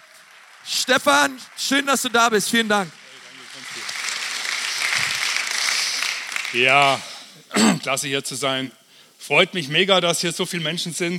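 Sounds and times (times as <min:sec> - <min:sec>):
audience applause welcoming a guest at an event: 0:00.0 - 0:07.2
speech: 0:00.7 - 0:03.0, 0:06.5 - 0:11.1.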